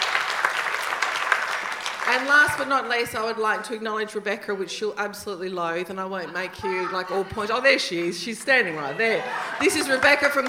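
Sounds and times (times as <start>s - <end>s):
audience applause: 0.0s - 2.7s, 9.1s - 10.4s
speech: 2.1s - 10.4s
laughter: 6.0s - 10.4s.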